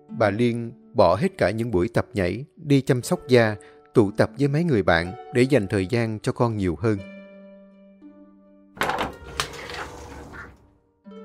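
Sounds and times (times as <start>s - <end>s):
speech: 0.2s - 7.1s
door opening: 8.8s - 10.7s.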